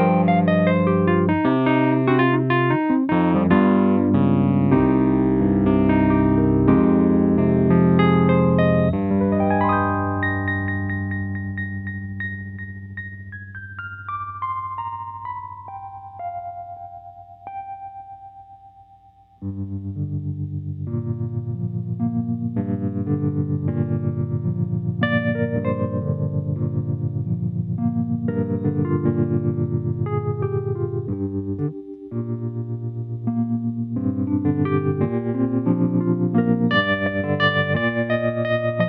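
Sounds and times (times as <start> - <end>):
Wurlitzer electric piano through a Twin amplifier: 0.0 - 38.8.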